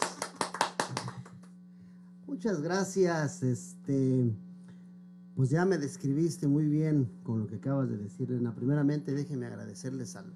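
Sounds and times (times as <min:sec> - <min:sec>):
applause: 0:00.0 - 0:01.5
speech: 0:02.3 - 0:04.4, 0:05.4 - 0:10.3.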